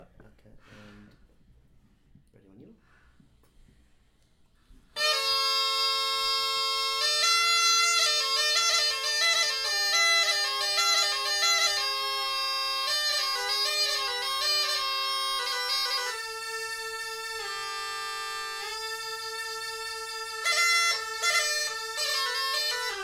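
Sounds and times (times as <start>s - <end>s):
bagpipes: 5.0s - 23.0s.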